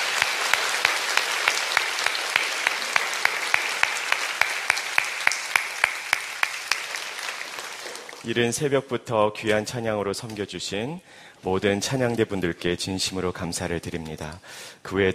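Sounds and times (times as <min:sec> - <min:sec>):
audience applause: 0:00.0 - 0:08.3
speech: 0:08.2 - 0:15.1.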